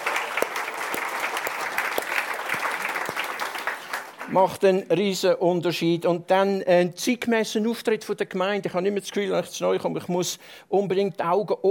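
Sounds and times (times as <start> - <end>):
audience applause: 0.0 - 4.4
speech: 4.3 - 11.6.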